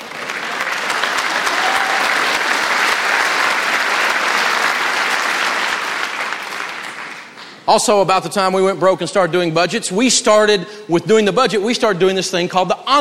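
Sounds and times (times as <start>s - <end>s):
audience applause: 0.0s - 7.6s
speech: 7.7s - 12.9s.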